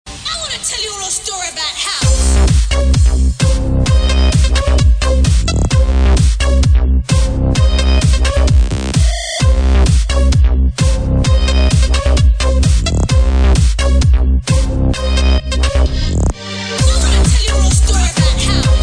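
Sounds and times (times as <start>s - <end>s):
house music: 0.3s - 18.8s.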